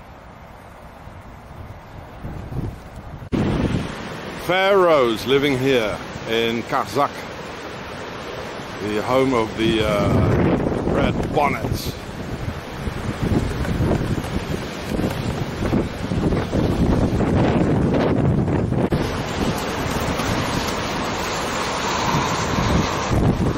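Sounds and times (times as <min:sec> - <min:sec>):
strong wind: 0:00.0 - 0:23.5
speech: 0:04.5 - 0:07.2, 0:08.8 - 0:12.0.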